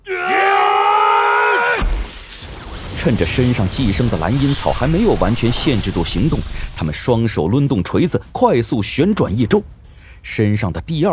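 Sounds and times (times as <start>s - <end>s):
two brothers roaring together: 0.0s - 1.9s
speech: 3.0s - 11.1s.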